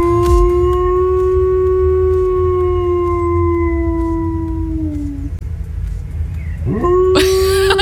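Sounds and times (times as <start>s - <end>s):
border collie howling imitating fire siren: 0.0s - 5.4s, 6.6s - 7.2s
laughter: 7.2s - 7.8s.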